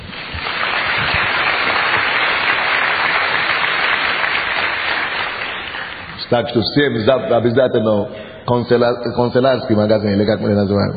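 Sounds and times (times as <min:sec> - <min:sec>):
audience applause: 0:00.0 - 0:06.2
speech: 0:06.3 - 0:10.9.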